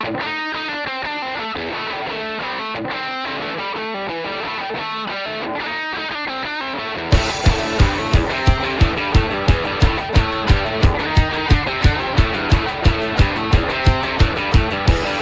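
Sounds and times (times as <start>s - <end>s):
intro music: 7.1s - 15.2s.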